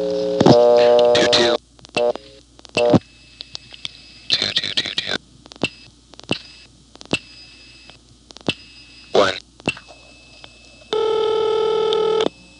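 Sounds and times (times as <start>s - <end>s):
steady high telephone line tone: 0.0s - 2.2s, 8.8s - 12.5s
noisy crackling burst on a telephone line: 0.4s - 3.1s, 4.2s - 7.2s
telephone line pulse dialing clicks: 11.0s - 12.3s.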